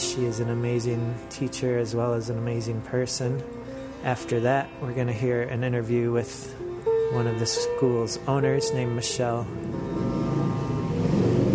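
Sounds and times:
speech: 0.2 - 10.1
motorcycle passing by: 9.6 - 11.5.

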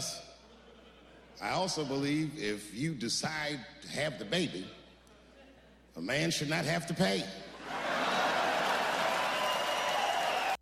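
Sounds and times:
speech: 1.4 - 4.8, 6.0 - 7.8
crowd cheering and reacting: 7.6 - 10.5
clapping: 8.6 - 10.5.

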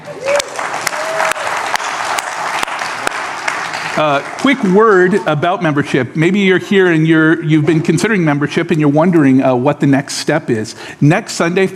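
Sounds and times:
congregation clapping during a church service: 0.0 - 5.5
speech: 4.0 - 11.7.

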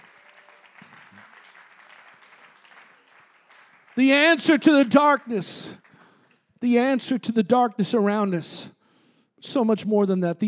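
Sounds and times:
crowd clapping hands: 0.0 - 6.9
speech: 4.0 - 5.8, 6.6 - 8.8, 9.4 - 10.4.

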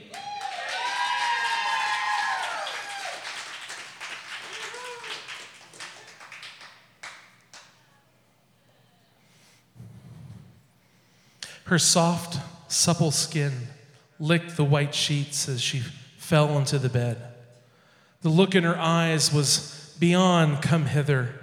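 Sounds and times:
high whoops and cheers: 0.0 - 3.4, 4.4 - 6.1
audience applause: 0.0 - 7.8
speech: 11.7 - 17.4, 18.2 - 21.4.

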